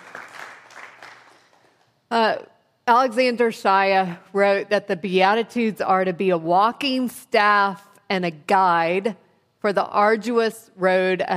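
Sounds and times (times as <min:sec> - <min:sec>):
audience applause: 0:00.0 - 0:01.7
speech: 0:02.1 - 0:11.3.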